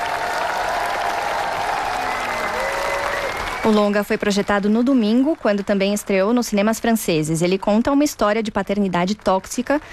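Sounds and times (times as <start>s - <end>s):
festival audience applauding a film: 0.0s - 6.6s
speech: 3.7s - 9.9s.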